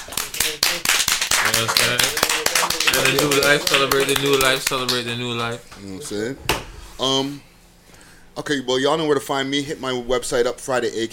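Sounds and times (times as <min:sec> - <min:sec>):
rhythmic hand clapping: 0:00.0 - 0:05.6
speech: 0:01.6 - 0:02.2, 0:02.9 - 0:07.5, 0:08.4 - 0:11.1.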